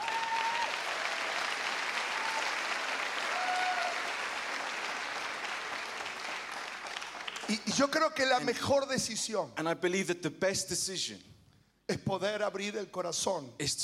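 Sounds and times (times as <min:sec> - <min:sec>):
audience applause: 0:00.0 - 0:07.9
speech: 0:07.5 - 0:11.3, 0:11.9 - 0:13.8.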